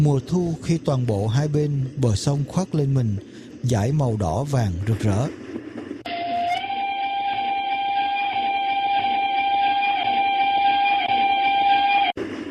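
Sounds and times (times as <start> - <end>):
speech: 0.0 - 5.5
steam locomotive whistle long blast: 6.1 - 12.2.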